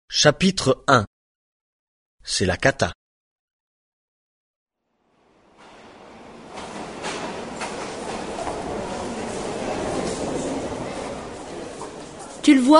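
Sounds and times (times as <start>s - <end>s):
speech: 0.1s - 1.1s, 2.2s - 3.0s, 12.4s - 12.7s
rail noise on a busy train station platform at Saint-Malo: 5.2s - 12.7s.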